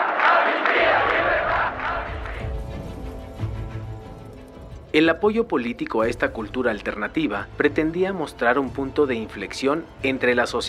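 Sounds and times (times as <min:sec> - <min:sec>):
protest crowd chanting for amnesty: 0:00.0 - 0:02.7
speech: 0:05.0 - 0:10.6.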